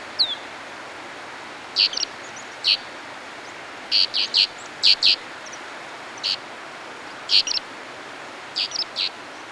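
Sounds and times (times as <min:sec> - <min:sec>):
bird chirping and twittering in snow: 0:00.2 - 0:00.5, 0:01.8 - 0:02.9, 0:03.5 - 0:05.6, 0:06.2 - 0:06.4, 0:07.3 - 0:07.6, 0:08.6 - 0:09.1.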